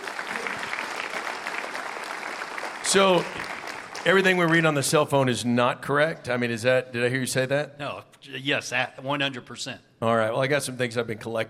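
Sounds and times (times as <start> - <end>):
audience applause: 0.0 - 5.0
speech: 2.9 - 11.4.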